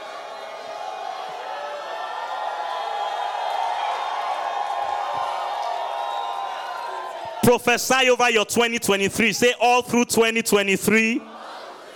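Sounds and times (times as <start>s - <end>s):
audience shouting for victory: 0.0s - 11.9s
whoops: 0.2s - 7.4s
speech: 7.5s - 11.3s.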